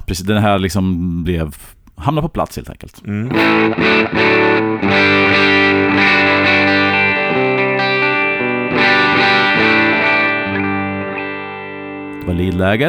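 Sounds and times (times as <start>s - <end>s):
speech: 0.1s - 6.2s, 12.3s - 12.8s
electric guitar played through its pickups: 3.3s - 12.8s.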